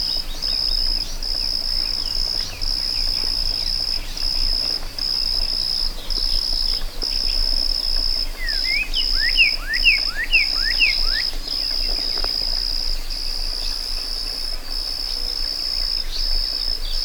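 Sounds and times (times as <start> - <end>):
cricket chirping in a meadow: 0.0 - 17.0.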